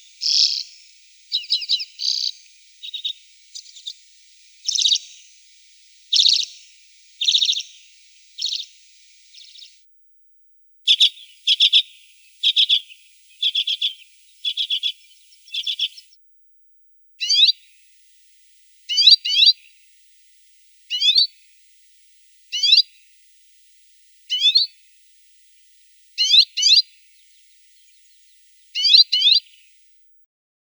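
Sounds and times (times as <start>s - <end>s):
Arctic redpoll calls: 0.2s - 9.9s, 10.9s - 16.2s, 17.2s - 19.9s, 20.7s - 21.5s, 22.3s - 23.2s, 24.1s - 29.7s.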